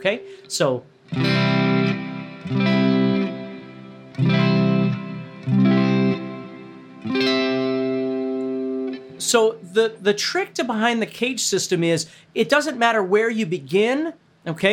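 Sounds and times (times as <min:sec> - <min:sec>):
speech: 0:00.0 - 0:01.5, 0:02.5 - 0:02.7, 0:09.3 - 0:14.7
electric guitar strumming a D shape barre chord: 0:01.1 - 0:09.8.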